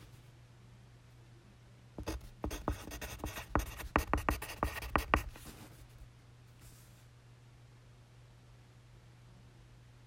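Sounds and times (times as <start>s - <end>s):
faint steady low hum: 0.0s - 10.0s
pencil scratching across paper: 2.0s - 5.9s
soft brief rustle: 5.3s - 7.2s.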